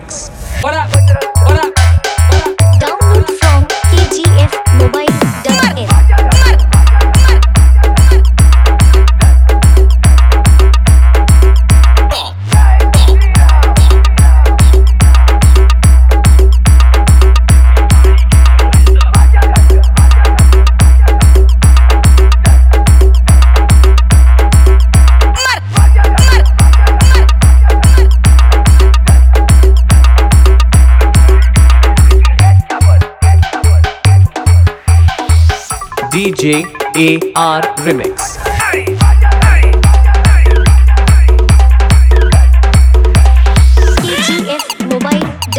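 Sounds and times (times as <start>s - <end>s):
Ram Puja bhakti humming dance road remix: 0.2s - 45.5s.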